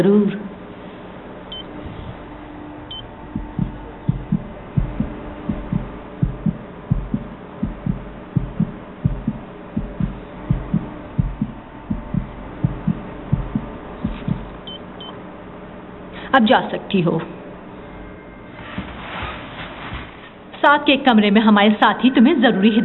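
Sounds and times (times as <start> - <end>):
speech: 0.0 - 0.5, 16.4 - 17.4, 20.7 - 22.8
low hum: 0.5 - 19.0
fetal heartbeat on ultrasound monitor: 2.9 - 14.8.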